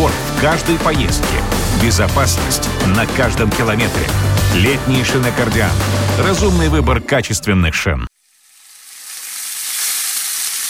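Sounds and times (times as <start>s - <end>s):
speech: 0.4s - 8.1s
meat sizzling on a grill: 8.2s - 10.6s.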